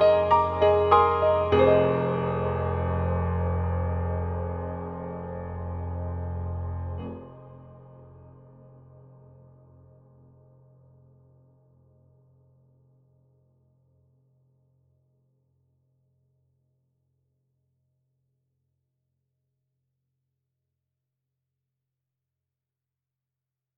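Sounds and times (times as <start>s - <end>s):
voice and piano: 0.0s - 9.6s.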